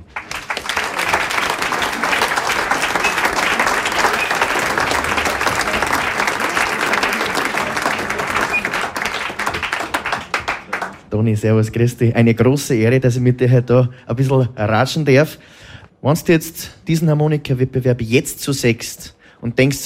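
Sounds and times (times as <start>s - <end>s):
audience applause: 0.0s - 11.1s
speech: 11.2s - 19.8s.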